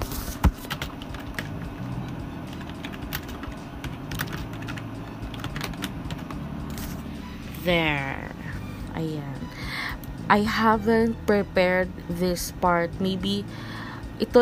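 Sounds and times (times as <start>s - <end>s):
low steady hum: 0.0s - 14.3s
typing on a computer keyboard: 0.6s - 1.6s, 2.5s - 6.3s
speech: 7.6s - 8.2s, 9.0s - 9.4s, 10.3s - 14.3s.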